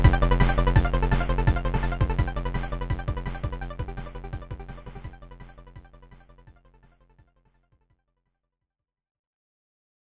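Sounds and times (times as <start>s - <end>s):
chiptune music bed: 0.0s - 6.7s.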